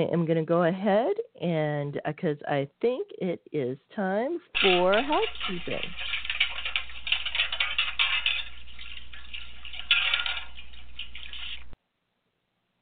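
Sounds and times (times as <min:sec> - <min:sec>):
speech: 0:00.0 - 0:06.2
metal plates washed in a metal wash tub on the stove: 0:04.6 - 0:11.8
water splashing in a metal wash tub: 0:04.6 - 0:11.8.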